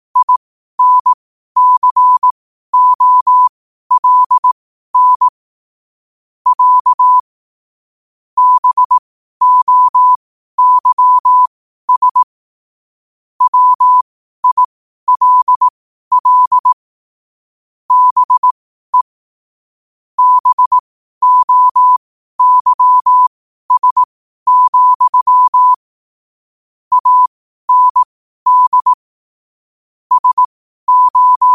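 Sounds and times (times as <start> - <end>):
morse code at 5 wpm: 0.2 - 5.3, 6.5 - 7.2, 8.4 - 12.3, 13.4 - 16.8, 17.9 - 19.1, 20.2 - 25.8, 26.9 - 29.0, 30.1 - 31.5.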